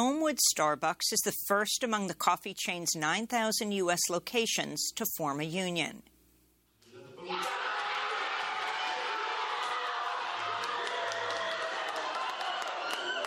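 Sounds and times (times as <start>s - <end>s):
speech: 0.0s - 6.1s
workers cheering at the Elmwood Starbucks store in Buffalo New York: 6.9s - 13.2s
clapping: 7.3s - 13.2s.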